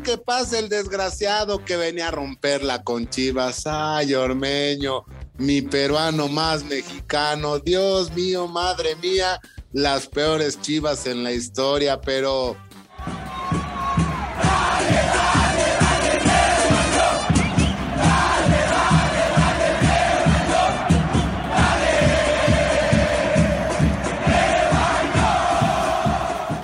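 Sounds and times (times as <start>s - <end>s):
speech: 0.0s - 13.2s
stadium crowd chanting: 12.9s - 26.6s.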